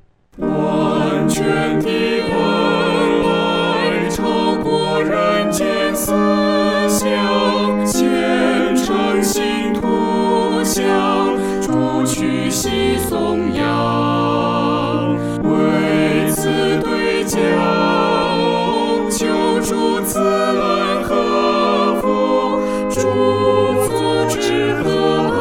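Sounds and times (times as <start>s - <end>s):
four-part choir singing: 0.4s - 25.3s.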